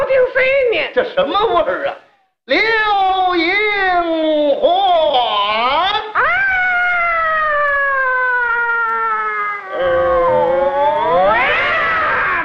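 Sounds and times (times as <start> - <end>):
speech: 0.1 - 5.3
person imitating cat-fight yowl: 6.1 - 12.4.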